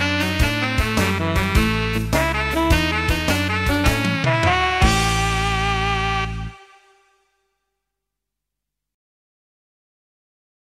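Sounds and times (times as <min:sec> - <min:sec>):
blues schema in A: 0:00.0 - 0:07.2.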